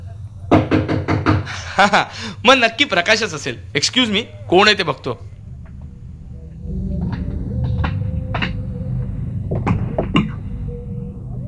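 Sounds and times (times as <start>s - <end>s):
knocking on a door: 0.5s - 1.5s
speech: 1.8s - 5.3s
low hum: 3.5s - 11.4s.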